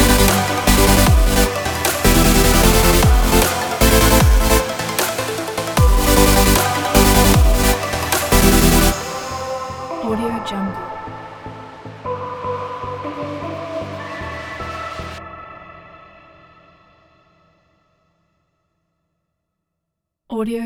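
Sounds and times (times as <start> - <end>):
opener music: 0.0 - 15.2.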